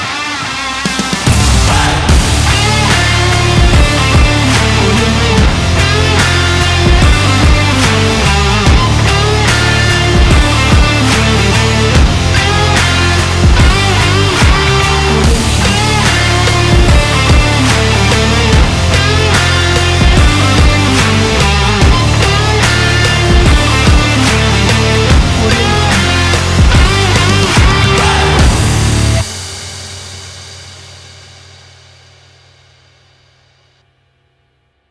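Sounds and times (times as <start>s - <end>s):
sport rock music: 0.0s - 30.4s.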